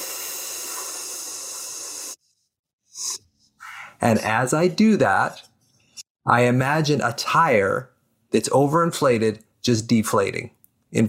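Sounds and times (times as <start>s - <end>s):
hissing exhale through closed teeth: 0.0s - 2.2s
speech: 4.0s - 5.5s, 6.3s - 11.0s.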